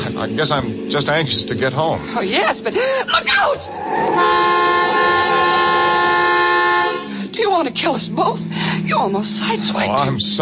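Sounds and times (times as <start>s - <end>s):
speech: 0.2s - 5.4s, 7.4s - 10.3s
car horn honking: 4.0s - 7.3s.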